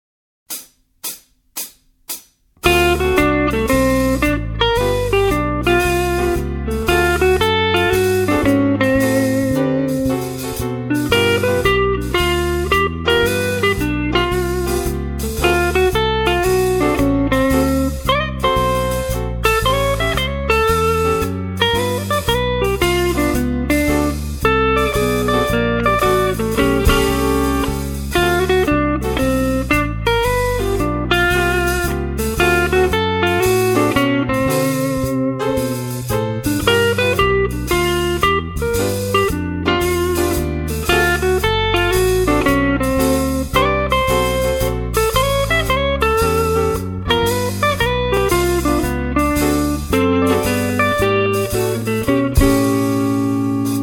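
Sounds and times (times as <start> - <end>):
blues jazz music: 0.5 - 53.8.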